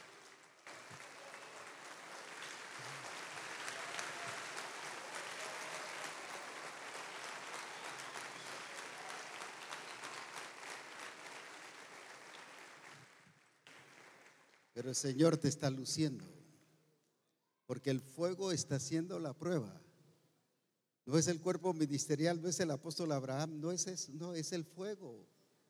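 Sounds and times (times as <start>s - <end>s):
weak, sparse audience applause: 0.0s - 14.8s
speech: 14.8s - 16.4s, 17.8s - 19.9s, 21.1s - 25.4s.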